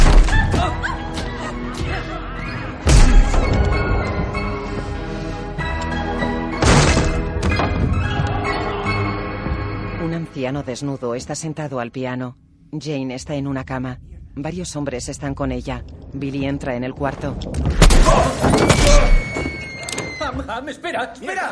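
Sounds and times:
music: 0.0s - 21.5s
door kicked open: 6.6s - 8.3s, 17.6s - 20.3s
speech: 10.4s - 19.5s, 20.3s - 21.5s.

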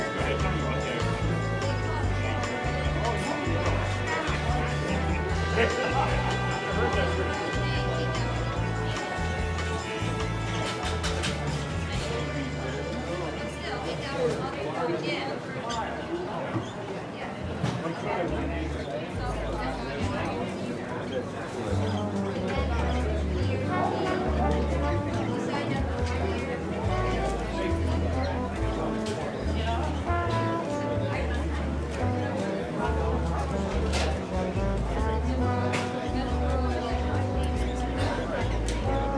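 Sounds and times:
music with bass line, melody and percussion in a seaside cafe: 0.0s - 12.4s, 21.7s - 39.1s
voices chattering in a seaside cafe: 0.0s - 39.1s.

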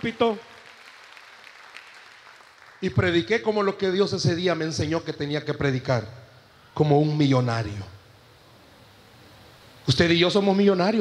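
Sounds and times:
speech: 0.0s - 0.5s, 2.8s - 6.2s, 6.8s - 8.0s, 9.9s - 10.9s
audience applause: 0.0s - 2.9s.

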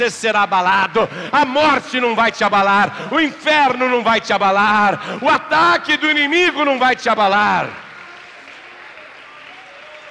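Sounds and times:
speech: 0.0s - 7.8s
audience applauding: 7.2s - 10.1s.

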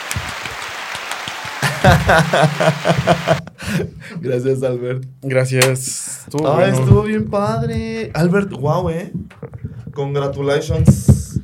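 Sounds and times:
applause sound effect: 0.0s - 3.4s
laughter: 1.5s - 4.0s
speech: 2.1s - 9.4s, 10.0s - 11.1s.

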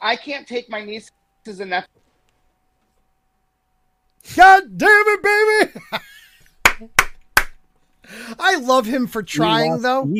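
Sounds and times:
speech: 0.0s - 2.0s, 4.2s - 6.1s, 6.8s - 7.1s, 8.1s - 10.1s
hands clapping: 6.6s - 7.6s.

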